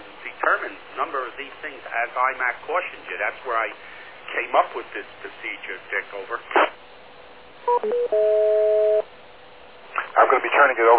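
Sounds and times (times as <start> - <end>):
speech: 0.5 - 6.8, 7.6 - 8.6, 10.4 - 10.9
DTMF touch-tone beeps resetting a radio repeater: 7.7 - 9.0.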